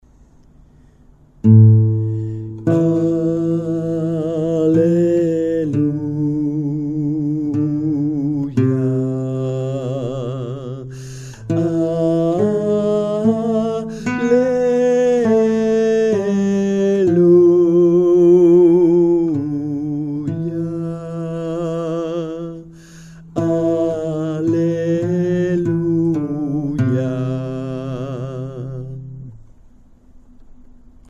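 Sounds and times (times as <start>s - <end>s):
soprano part singing an Easter hymn: 2.0s - 29.4s.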